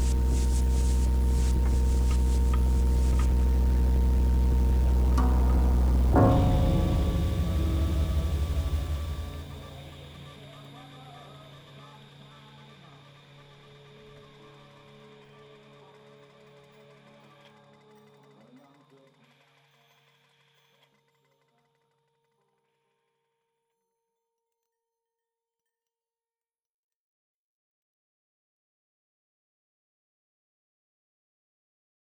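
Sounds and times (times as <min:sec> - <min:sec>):
bells: 0:00.0 - 0:10.4
piano: 0:00.0 - 0:10.5.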